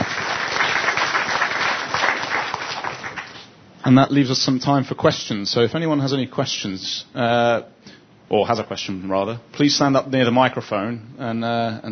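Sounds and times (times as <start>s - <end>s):
audience round of applause: 0.0s - 3.4s
speech: 3.9s - 11.8s.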